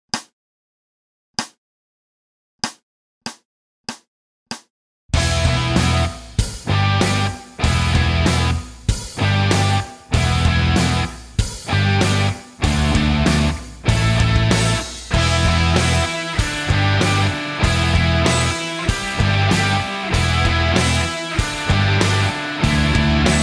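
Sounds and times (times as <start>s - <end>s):
rock backing track: 5.2s - 23.4s.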